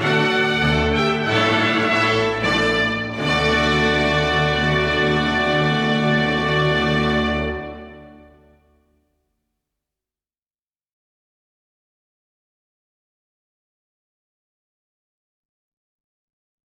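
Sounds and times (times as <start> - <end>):
minuet: 0.0 - 8.7.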